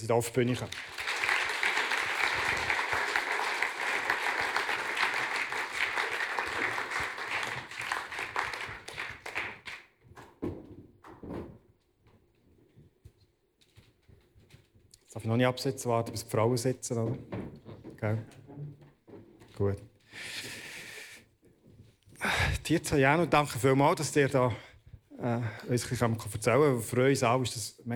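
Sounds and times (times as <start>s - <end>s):
speech: 0.0s - 1.0s, 15.3s - 17.4s, 18.0s - 18.4s, 19.6s - 19.9s, 22.7s - 27.9s
warm crowd applause: 0.6s - 9.8s.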